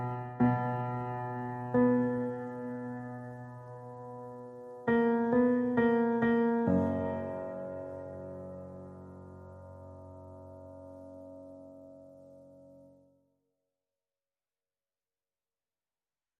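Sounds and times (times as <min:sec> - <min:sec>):
top line pianos: 0:00.0 - 0:13.1.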